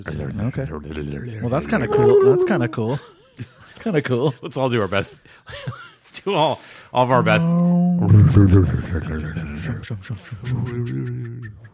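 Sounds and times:
speech: 0.0s - 11.7s
people imitating thrumming mechanical engine noise: 1.7s - 2.9s.

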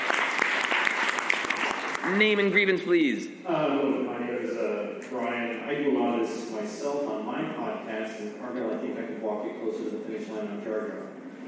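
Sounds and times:
audience applause: 0.0s - 2.7s
speech: 2.1s - 11.2s.

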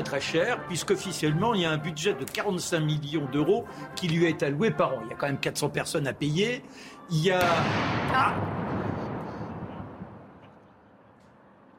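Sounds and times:
speech: 0.1s - 8.6s
cannon shot of a royal gun salute: 7.4s - 10.9s.

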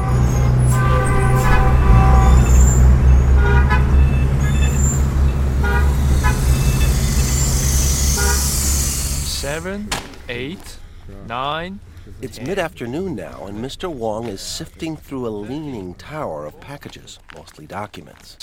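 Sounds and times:
car horn toots: 0.0s - 10.5s
dense street traffic roar in modern Beijing: 0.0s - 16.5s
speech: 9.6s - 18.4s.

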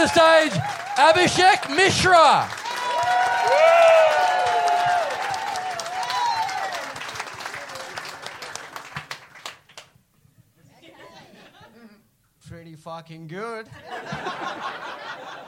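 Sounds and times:
speech: 0.0s - 2.6s, 12.8s - 15.0s
audience applause: 0.0s - 9.9s
laughter: 5.8s - 6.6s, 8.5s - 15.4s.

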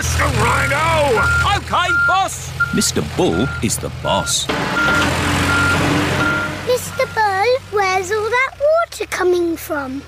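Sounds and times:
speech: 0.0s - 6.0s, 6.8s - 10.0s
digger diesel engine rumble: 0.0s - 10.0s
digger reversing alarm beeps: 1.2s - 7.2s.

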